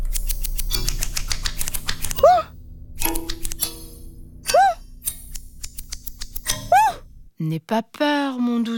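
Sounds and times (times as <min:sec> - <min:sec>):
scissors cutting a plush toy's fur at a hairdresser: 0:00.1 - 0:02.3, 0:03.0 - 0:03.8, 0:04.5 - 0:06.7
speech: 0:07.5 - 0:08.7.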